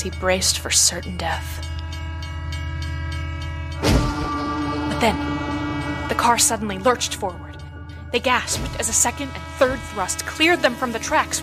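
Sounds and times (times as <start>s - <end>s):
speech: 0.0s - 1.7s, 5.0s - 5.3s, 6.2s - 7.5s, 8.1s - 11.4s
train engine passing with a roar: 2.8s - 11.4s.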